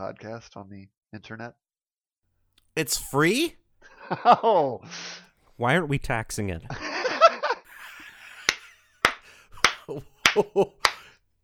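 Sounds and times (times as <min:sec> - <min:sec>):
speech: 0:00.0 - 0:01.7, 0:02.8 - 0:06.9, 0:09.9 - 0:10.9
laughter: 0:04.0 - 0:04.9, 0:06.7 - 0:11.1
slow clap: 0:07.7 - 0:11.2.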